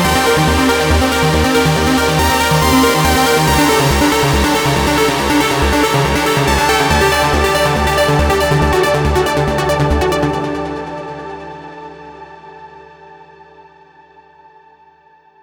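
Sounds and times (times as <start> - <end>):
big trance arpeggio synth lead: 0.0 - 10.9.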